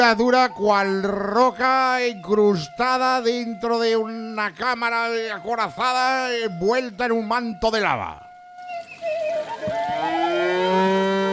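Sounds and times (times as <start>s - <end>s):
speech: 0.0s - 8.2s
cow mooing: 10.0s - 11.3s.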